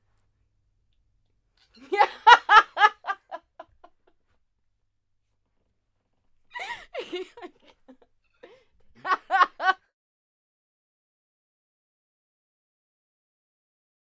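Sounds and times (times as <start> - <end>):
laughing: 1.8 - 3.7, 6.6 - 9.8.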